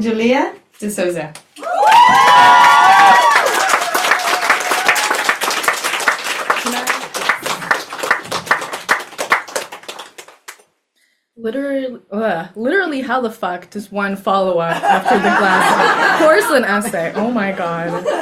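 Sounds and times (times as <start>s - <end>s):
speech: 0.0s - 1.5s, 11.4s - 18.1s
crowd whooping and cheering: 1.6s - 5.8s
audience applause: 1.6s - 10.6s
laughter: 14.7s - 18.1s.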